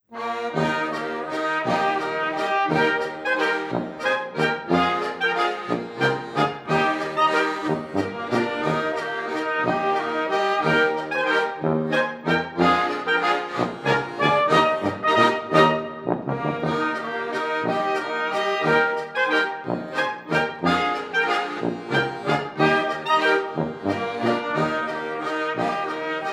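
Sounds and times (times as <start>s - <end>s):
castle waltz music: 0.2s - 26.3s.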